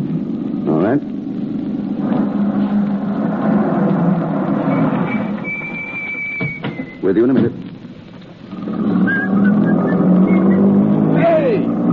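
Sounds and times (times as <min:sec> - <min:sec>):
car engine as the vehicle pulls away: 0:00.0 - 0:07.5, 0:08.2 - 0:11.9
speech: 0:00.9 - 0:01.2, 0:07.1 - 0:07.6
faint whistle-like tones: 0:04.6 - 0:07.2, 0:09.0 - 0:10.9.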